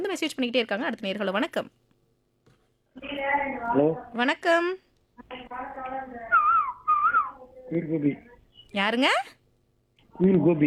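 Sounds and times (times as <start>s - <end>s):
speech: 0.0s - 1.9s, 3.0s - 6.5s, 7.7s - 9.4s, 10.2s - 10.6s
person whistling an imitation of a cuckoo's call: 6.9s - 7.3s.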